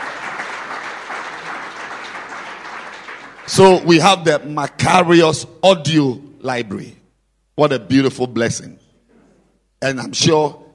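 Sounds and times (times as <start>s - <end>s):
crowd clapping hands: 0.0s - 4.2s
speech: 3.5s - 7.0s, 7.6s - 8.8s, 9.8s - 10.6s.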